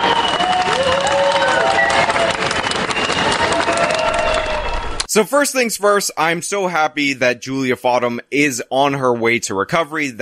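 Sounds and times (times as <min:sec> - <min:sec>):
hospital staff applauding: 0:00.0 - 0:05.1
hospital staff cheering: 0:00.0 - 0:05.1
speech: 0:05.2 - 0:10.2.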